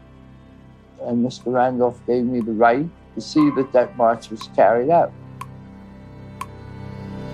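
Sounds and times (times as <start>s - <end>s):
speech: 1.0s - 5.2s
clock ticking: 1.4s - 1.7s, 3.3s - 4.6s.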